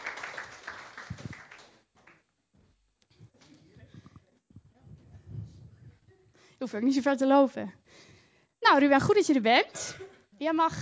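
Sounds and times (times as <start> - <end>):
audience applause: 0.0 - 1.8
speech: 6.6 - 7.8, 8.7 - 10.8.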